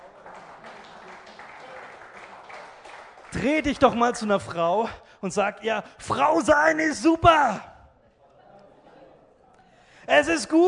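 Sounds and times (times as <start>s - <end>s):
crowd applauding: 0.0s - 4.4s
speech: 3.3s - 7.7s, 10.1s - 10.6s.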